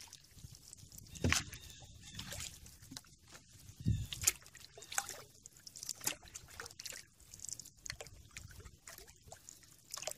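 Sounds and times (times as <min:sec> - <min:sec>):
lighter clicks and drips: 0:00.0 - 0:10.1
water sloshing and trickling against a canoe hull on a lazy river: 0:00.0 - 0:10.1
heavier knocks or splashes: 0:01.2 - 0:01.6.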